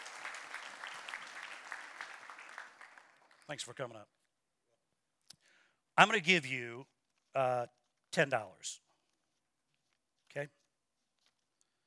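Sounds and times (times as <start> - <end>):
audience applause: 0.0 - 3.7
speech: 3.5 - 4.2, 6.0 - 8.9, 10.3 - 10.6.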